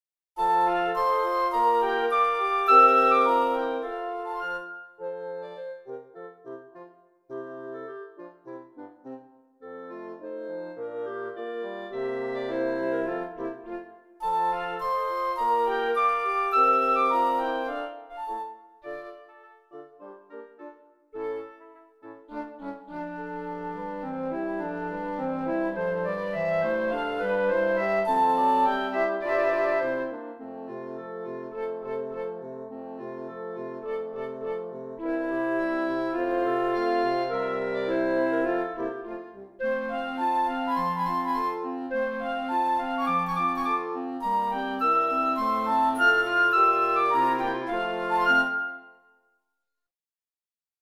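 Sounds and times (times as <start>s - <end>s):
flute: 0.4s - 49.3s.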